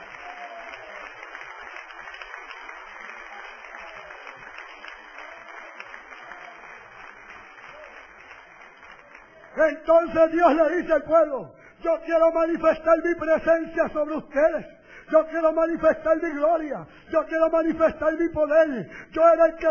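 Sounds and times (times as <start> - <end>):
audience applause: 0.0 - 10.8
speech: 9.6 - 19.6.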